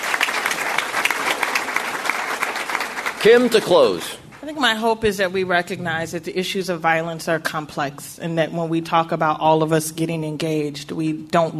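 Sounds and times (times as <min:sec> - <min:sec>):
audience applause: 0:00.0 - 0:04.2
speech: 0:03.2 - 0:11.5.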